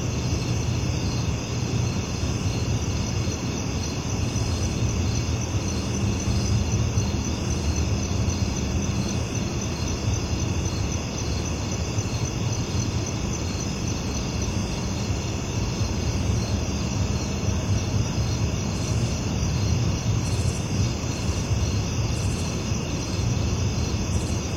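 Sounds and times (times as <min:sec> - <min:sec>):
crickets chirping in a chorus: 0:00.0 - 0:24.5.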